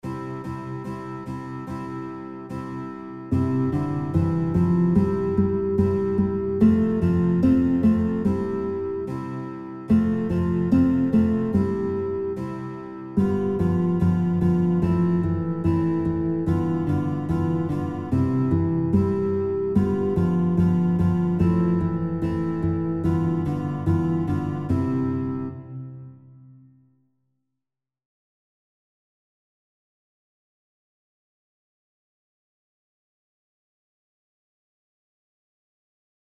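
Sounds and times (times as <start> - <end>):
guitar: 0.0 - 26.9.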